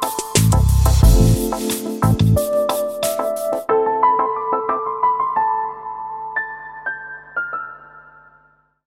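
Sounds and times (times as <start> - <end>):
dreamy piano: 0.0 - 8.8.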